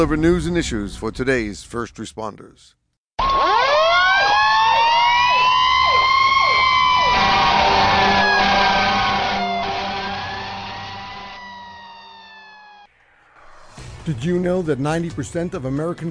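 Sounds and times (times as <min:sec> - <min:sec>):
speech: 0:00.0 - 0:03.6, 0:14.1 - 0:16.0
emergency vehicle sirens: 0:03.2 - 0:12.9.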